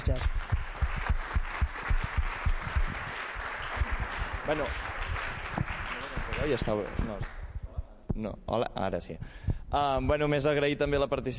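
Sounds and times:
speech: 0:00.0 - 0:00.4, 0:04.5 - 0:04.9, 0:06.4 - 0:07.4, 0:08.2 - 0:11.3
audience applause at gala: 0:00.0 - 0:07.4.

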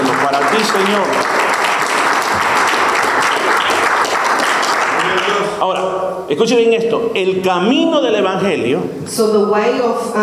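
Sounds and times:
audience applause: 0:00.0 - 0:05.6
speech: 0:00.6 - 0:01.4, 0:05.6 - 0:10.2.

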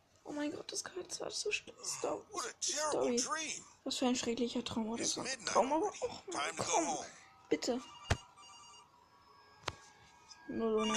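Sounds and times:
speech: 0:00.3 - 0:08.0, 0:10.5 - 0:10.9
video game telephone ringing: 0:06.3 - 0:10.9.

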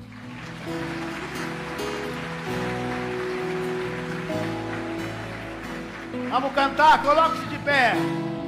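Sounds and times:
audience applauding: 0:00.0 - 0:08.3
speech: 0:06.3 - 0:08.2.

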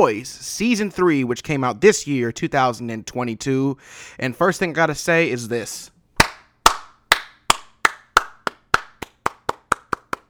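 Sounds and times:
speech: 0:00.0 - 0:06.0
single person clapping: 0:06.2 - 0:10.2.

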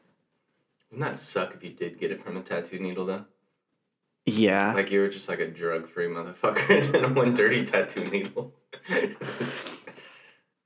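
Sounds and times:
speech: 0:00.9 - 0:03.3, 0:04.2 - 0:09.8
laughter: 0:06.4 - 0:09.9
breathy sniffs through the nose: 0:09.2 - 0:10.4.

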